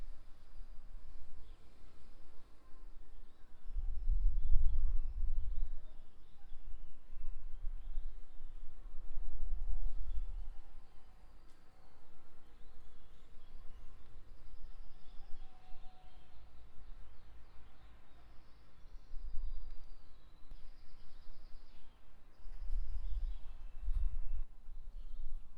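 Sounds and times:
faint bird song: 0.0s - 25.5s.

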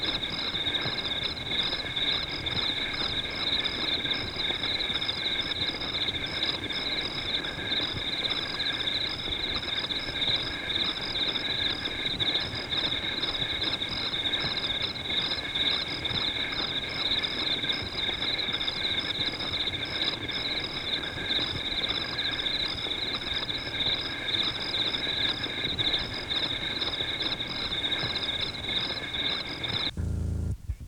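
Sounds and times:
crickets trilling: 0.0s - 30.5s
faint low background hum: 29.8s - 30.8s
brief noisy rumble: 29.9s - 30.8s.

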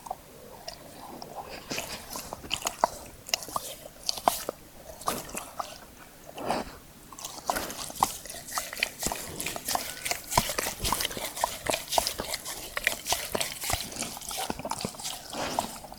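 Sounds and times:
dog licking with wet smacking and slurping: 0.0s - 6.4s, 7.1s - 15.9s.

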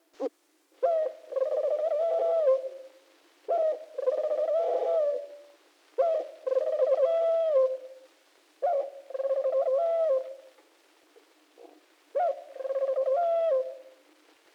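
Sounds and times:
pigeon cooing: 0.8s - 2.9s, 3.5s - 8.0s, 8.6s - 10.5s, 11.6s - 14.0s.

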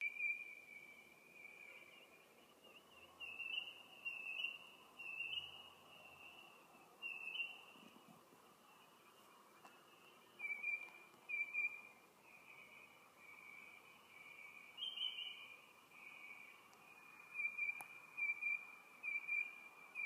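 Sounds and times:
bird whistling: 0.0s - 1.8s, 2.7s - 7.6s, 10.4s - 11.9s, 14.8s - 15.5s, 17.3s - 20.0s.

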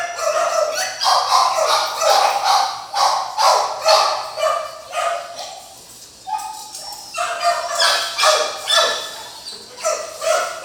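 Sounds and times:
dogs barking in a kennel: 0.0s - 10.6s.

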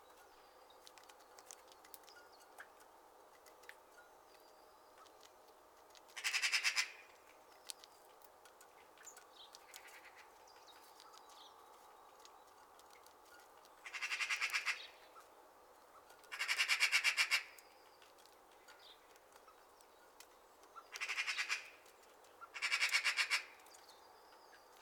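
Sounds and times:
other birds chirping: 0.0s - 24.8s
magpie rattling chatter: 6.1s - 7.0s, 13.7s - 15.0s, 16.0s - 17.6s, 20.8s - 21.8s, 22.4s - 23.6s.

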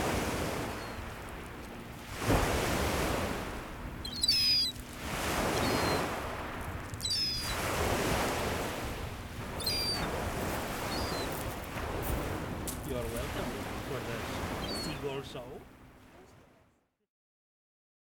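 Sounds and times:
gulls calling in harmonic squeals: 0.0s - 2.4s, 3.1s - 12.5s, 13.4s - 15.6s.

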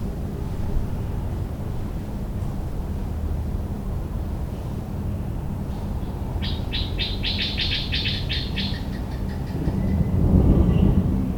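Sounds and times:
traffic rumble: 0.0s - 11.3s
bird chirping: 6.4s - 10.0s.

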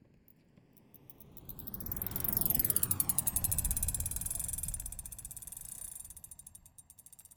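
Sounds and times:
bike passing by with Doppler shift: 1.5s - 6.6s.

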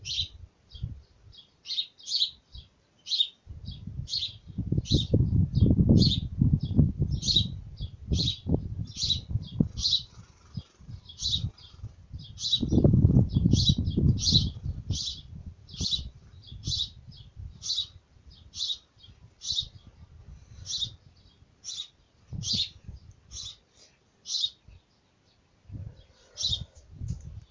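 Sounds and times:
bird chirping: 0.0s - 20.0s, 20.6s - 26.8s.

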